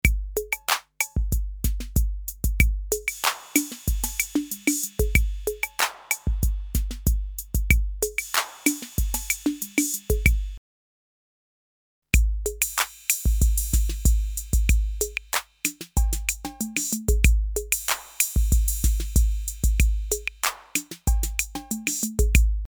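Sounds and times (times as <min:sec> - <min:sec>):
TR-808 and RD-8 drum machines: 0:00.0 - 0:10.6, 0:12.2 - 0:22.6.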